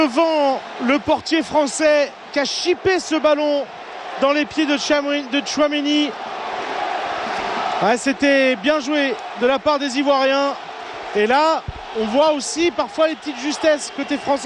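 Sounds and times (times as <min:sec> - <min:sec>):
French football commentary: 0:00.0 - 0:06.2, 0:07.8 - 0:14.4
speech: 0:00.0 - 0:06.3, 0:07.8 - 0:14.4
Ivory Coast football supporters roaring in Stade de la Beaujoire: 0:00.0 - 0:14.4.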